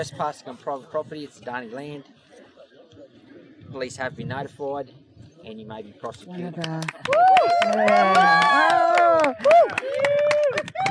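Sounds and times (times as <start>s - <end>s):
speech: 0.0s - 2.2s, 3.7s - 10.2s
protesters cheering: 7.1s - 10.8s.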